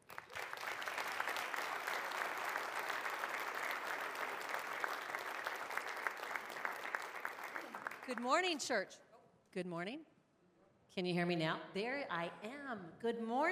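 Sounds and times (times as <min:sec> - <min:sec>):
church congregation at Bethany applauding to welcome Teen Challenge: 0:00.0 - 0:08.6
speech: 0:08.1 - 0:10.1, 0:10.9 - 0:13.5.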